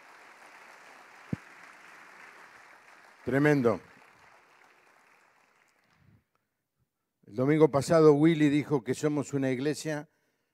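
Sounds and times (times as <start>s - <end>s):
audience applause: 0.0s - 6.0s
speech: 3.3s - 3.9s, 7.4s - 10.1s.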